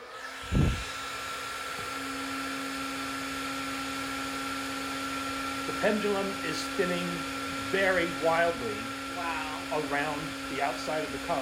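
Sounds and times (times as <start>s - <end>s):
terahertz blower blowing air: 0.0s - 11.4s
speech: 5.8s - 11.4s.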